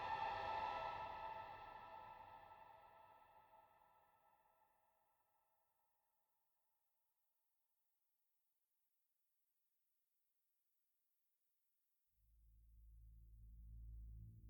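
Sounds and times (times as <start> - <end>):
ambient siren strings: 0.0 - 3.7.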